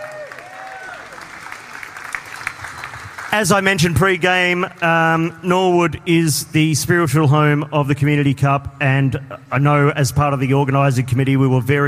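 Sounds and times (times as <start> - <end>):
whoops and cheers: 0.0 - 1.3
crowd applause: 0.0 - 4.0
speech: 3.3 - 11.8.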